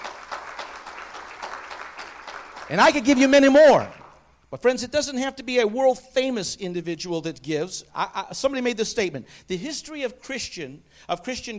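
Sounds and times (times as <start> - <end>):
church congregation clapping in praise during a sermon: 0.0 - 4.3
speech: 2.7 - 11.5.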